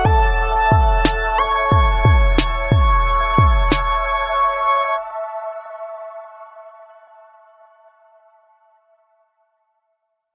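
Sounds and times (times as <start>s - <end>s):
beat: 0.0s - 4.4s
piano: 0.0s - 7.3s
synth: 0.0s - 8.0s.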